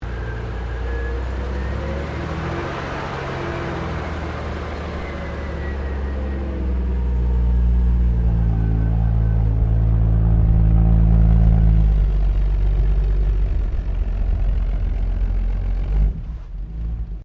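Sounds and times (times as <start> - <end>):
classic Australian Holden HD Premier car maneuvering: 0.0 - 17.2.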